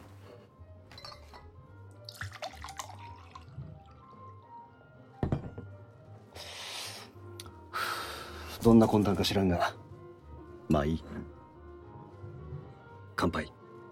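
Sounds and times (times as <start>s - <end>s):
brandy pouring into a glass: 2.0s - 4.4s
speech: 8.6s - 9.8s, 10.7s - 11.4s, 13.2s - 13.5s.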